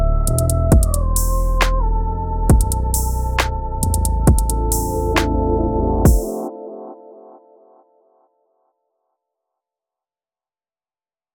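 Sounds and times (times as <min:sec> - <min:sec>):
hip hop beat at 135 BPM in D major: 0:00.3 - 0:01.8, 0:02.5 - 0:07.3.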